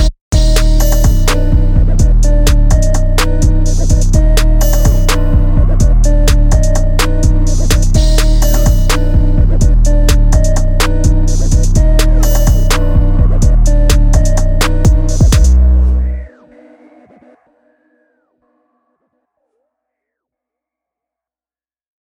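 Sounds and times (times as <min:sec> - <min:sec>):
instrumental music: 0:00.0 - 0:16.4.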